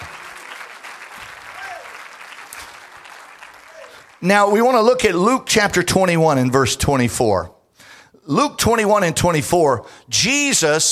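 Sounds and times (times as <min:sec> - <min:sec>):
people clapping hands: 0:00.0 - 0:05.0
speech: 0:04.2 - 0:07.6, 0:08.3 - 0:10.9.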